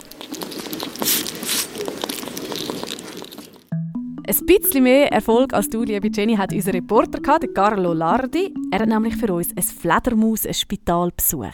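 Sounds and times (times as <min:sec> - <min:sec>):
hedgehog snuffling and rooting about: 0:00.0 - 0:03.6
brief steady tone: 0:03.7 - 0:10.1
speech: 0:04.5 - 0:11.5.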